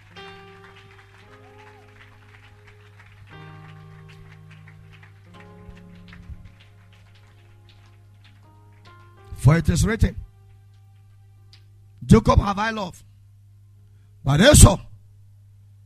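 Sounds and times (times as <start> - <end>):
audience clapping: 0.0 - 9.5
speech: 9.4 - 10.2, 12.1 - 13.1, 14.2 - 14.9.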